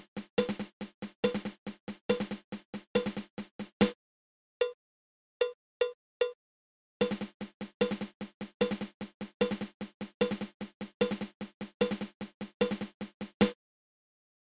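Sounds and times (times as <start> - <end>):
single dragadiddle snare drum rudiment: 0.0 - 4.0, 7.0 - 13.6.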